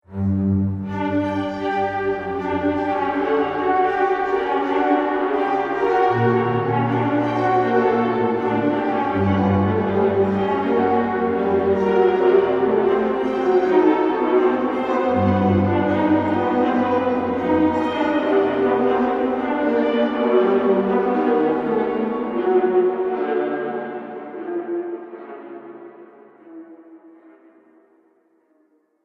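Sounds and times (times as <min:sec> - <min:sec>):
ghostly orchestral music: 0:00.1 - 0:28.2.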